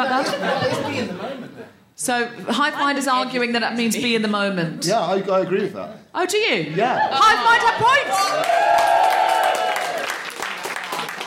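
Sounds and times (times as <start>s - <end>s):
laughter: 0.0s - 1.8s
speech: 0.0s - 9.0s
crowd audience applause and cheering: 7.1s - 11.2s.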